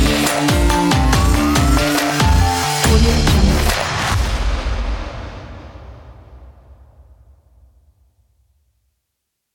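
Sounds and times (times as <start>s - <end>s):
sport dubstep big beat music: 0.0s - 5.6s.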